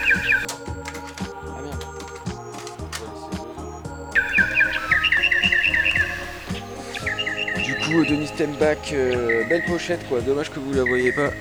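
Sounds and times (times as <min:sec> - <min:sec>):
recording of bright rapid bird chirps and tweets: 0:00.0 - 0:00.5, 0:04.1 - 0:11.4
soft rhythmic music: 0:00.0 - 0:11.4
speech: 0:07.9 - 0:11.4.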